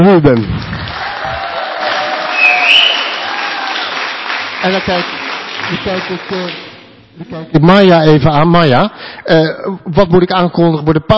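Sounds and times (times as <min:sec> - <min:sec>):
speech: 0:00.0 - 0:00.7, 0:04.6 - 0:06.6, 0:07.2 - 0:11.1
audience applause: 0:00.4 - 0:06.8.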